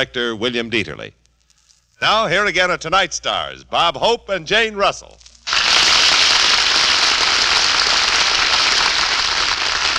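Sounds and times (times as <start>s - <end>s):
speech: 0.0s - 1.2s, 2.0s - 5.2s
audience applause: 5.5s - 9.9s.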